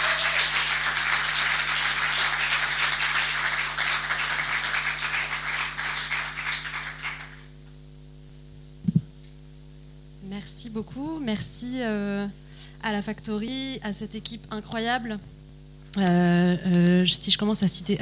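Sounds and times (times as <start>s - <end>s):
audience applause: 0.0s - 7.5s
speech: 10.8s - 18.0s.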